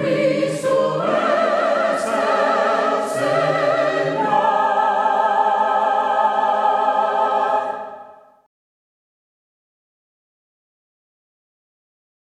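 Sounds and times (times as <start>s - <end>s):
voices singing hymns a cappella: 0.0s - 8.2s.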